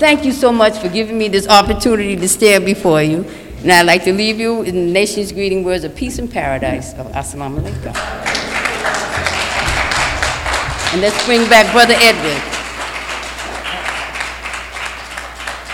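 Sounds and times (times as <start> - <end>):
speech: 0.0 - 8.2, 10.9 - 12.5
audience applause: 8.0 - 15.7.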